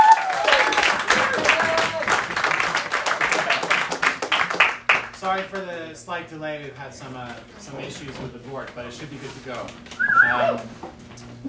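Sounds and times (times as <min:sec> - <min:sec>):
audience applause: 0:00.0 - 0:05.6
speech: 0:05.3 - 0:11.4.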